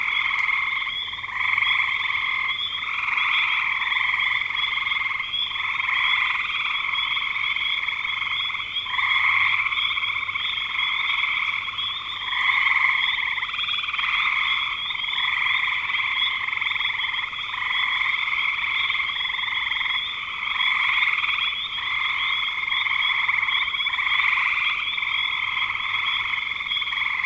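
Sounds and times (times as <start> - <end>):
frog chorus trilling: 0.0 - 27.2.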